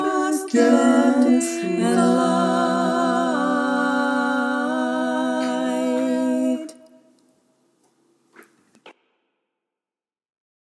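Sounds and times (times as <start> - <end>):
choir singing all parts: 0.0 - 7.2.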